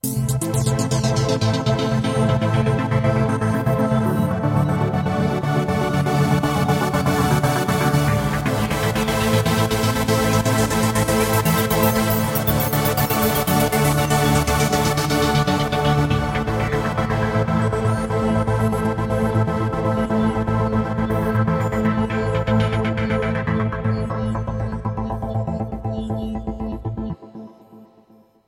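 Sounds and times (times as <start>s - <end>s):
motion synth pad: 0.0s - 28.2s.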